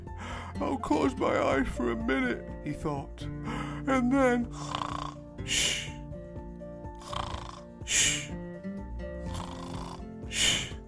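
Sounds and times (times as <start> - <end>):
sustained music: 0.0 - 10.8
speech: 0.6 - 4.8, 5.4 - 5.9
snoring of Thomas the Tank Engine falling asleep: 4.5 - 6.0, 7.0 - 8.4, 9.1 - 10.8.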